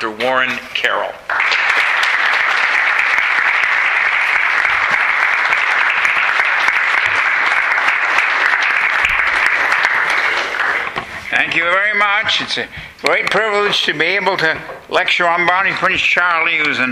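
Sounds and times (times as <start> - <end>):
speech: 0.0 - 1.4, 11.3 - 16.9
audience applause welcoming a lecturer at a college's 30th anniversary event: 1.3 - 12.1.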